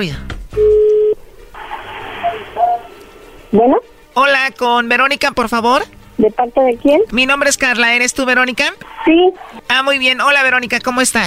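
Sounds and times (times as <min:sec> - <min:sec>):
speech: 0:00.0 - 0:00.7, 0:03.5 - 0:11.2
phone line hiss: 0:00.6 - 0:03.5
telephone call connecting tone: 0:02.2 - 0:03.0.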